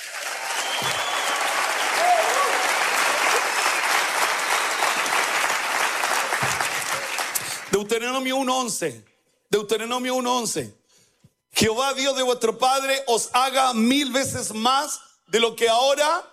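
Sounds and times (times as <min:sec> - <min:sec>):
loud audience applause: 0:00.0 - 0:07.8
speech: 0:07.8 - 0:10.8, 0:11.6 - 0:16.3.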